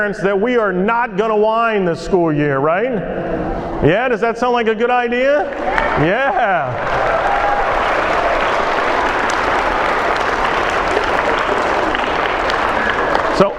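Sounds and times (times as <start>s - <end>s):
speech: 0.0s - 7.2s
audience applause: 5.5s - 13.5s.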